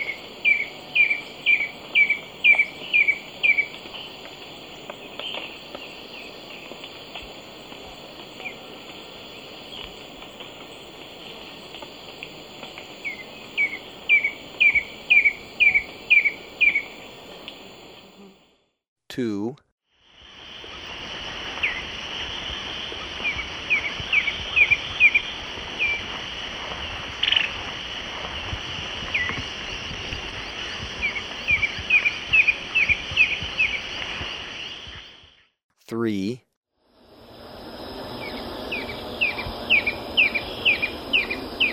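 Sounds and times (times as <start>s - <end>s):
Stripe-chested Antwren song: 0.0s - 4.2s, 13.0s - 17.3s, 23.2s - 26.0s, 31.0s - 35.6s, 38.2s - 41.7s
high insect hum: 0.0s - 18.6s, 20.0s - 35.6s, 36.8s - 41.7s
speech: 19.2s - 19.6s.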